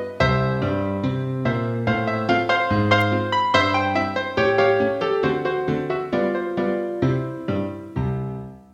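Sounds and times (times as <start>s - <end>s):
ragtime music: 0.0s - 8.4s.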